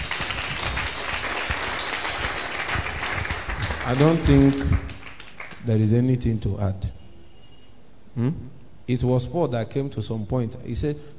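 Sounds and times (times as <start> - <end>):
audience clapping: 0.0 - 5.8
speech: 3.9 - 4.9, 5.6 - 7.0, 8.2 - 11.1.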